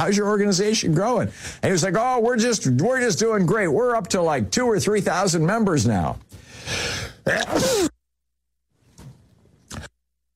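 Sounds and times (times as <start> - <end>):
speech: 0.0 - 7.9
sneeze: 7.3 - 8.0.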